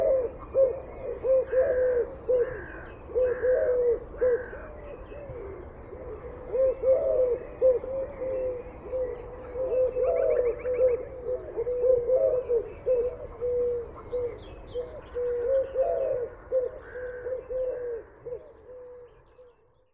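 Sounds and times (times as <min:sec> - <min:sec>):
Eurasian collared dove Streptopelia decaocto cooing: 0:00.0 - 0:19.5.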